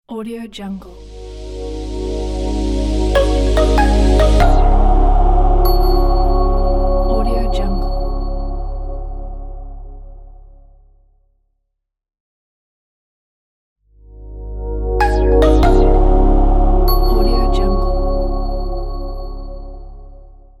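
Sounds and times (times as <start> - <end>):
modern cool logo jingle: 1.0 - 10.0, 14.2 - 20.0.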